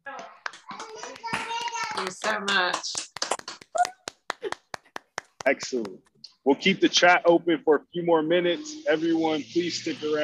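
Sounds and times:
audience applause: 0.5s - 5.8s
speech: 2.0s - 3.0s, 5.5s - 10.2s.

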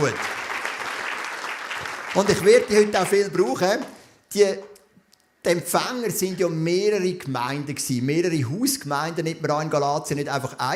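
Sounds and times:
speech: 0.0s - 0.3s, 2.1s - 4.7s, 5.4s - 10.7s
audience clapping: 0.0s - 4.0s.

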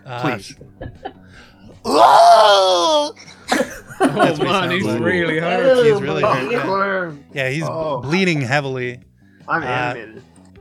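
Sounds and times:
speech: 0.1s - 3.3s, 4.0s - 10.3s
laughter: 0.2s - 1.8s, 3.0s - 6.9s
man imitating a pained scream: 1.8s - 3.2s.

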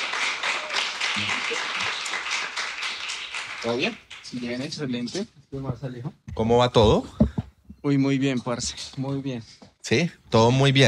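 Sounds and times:
applause: 0.0s - 4.6s
speech: 3.6s - 7.2s, 7.8s - 10.8s.

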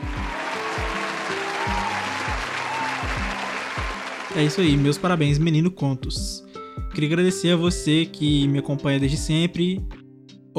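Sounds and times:
applause: 0.0s - 5.1s
speech: 4.4s - 10.0s.

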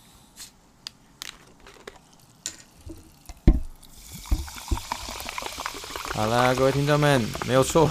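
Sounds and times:
sparkling water fizzing: 2.2s - 7.9s
speech: 6.2s - 7.9s.

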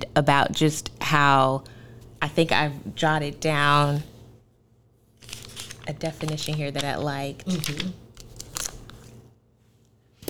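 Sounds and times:
speech: 0.2s - 4.1s, 5.9s - 8.0s
crisp crackly paper rustling: 3.5s - 4.1s, 5.2s - 9.3s.

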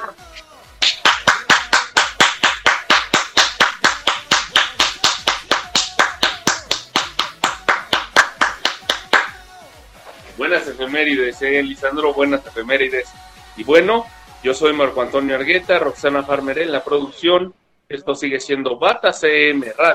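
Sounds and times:
audience applause: 0.8s - 9.3s
speech: 10.6s - 19.9s.

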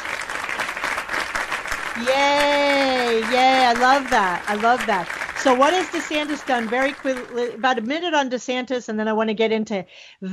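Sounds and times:
applause clapping: 0.0s - 8.1s
speech: 2.0s - 10.3s.

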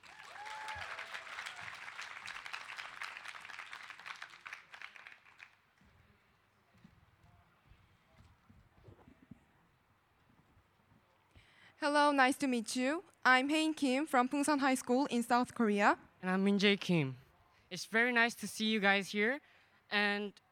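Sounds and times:
crowd applauding: 0.0s - 5.9s
speech: 11.8s - 20.4s.

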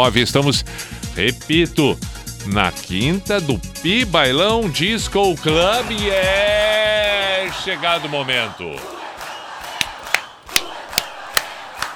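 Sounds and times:
speech: 0.0s - 9.0s
crowd roaring: 5.4s - 11.9s
sharp claps or beats: 9.2s - 11.9s.

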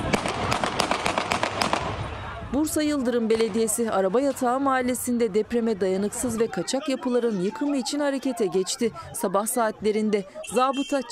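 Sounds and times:
gunshots fired into the air: 0.0s - 2.1s
crowd noise and raised voices: 0.0s - 11.0s
speech: 2.5s - 11.0s.

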